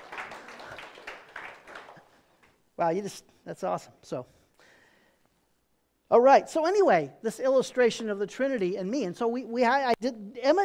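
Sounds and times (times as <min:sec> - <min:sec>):
audience applause: 0:00.0 - 0:02.5
speech: 0:02.8 - 0:04.4, 0:06.1 - 0:10.6.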